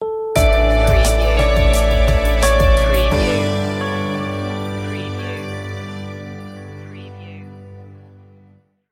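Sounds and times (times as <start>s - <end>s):
radiant musical stinger: 0.4s - 8.6s.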